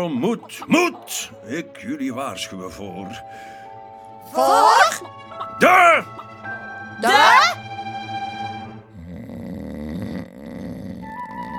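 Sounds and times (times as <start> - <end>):
speech: 0.0 - 3.6, 4.2 - 6.2, 7.0 - 7.6
rattling breath: 3.3 - 3.8
loud snoring: 8.9 - 11.5.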